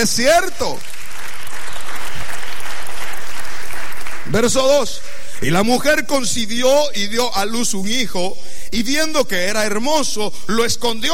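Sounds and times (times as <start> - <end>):
speech: 0.0 - 1.0, 4.2 - 11.1
audience applause: 0.6 - 4.4.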